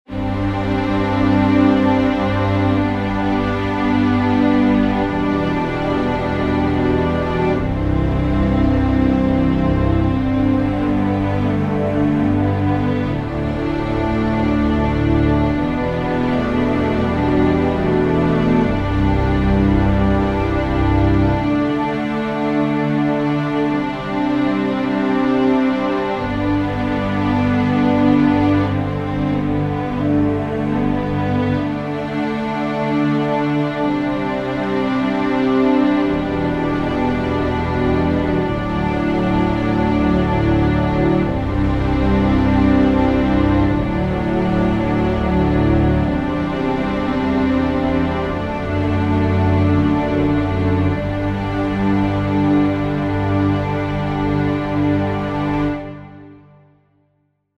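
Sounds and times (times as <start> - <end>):
underscore synth pad: 0.1 - 56.4.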